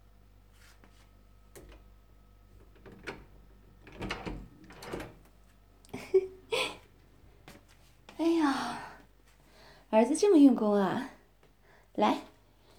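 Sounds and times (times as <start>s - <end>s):
bedroom door handle and latch clicking: 2.6s - 5.2s
speech: 10.0s - 11.1s, 12.0s - 12.3s.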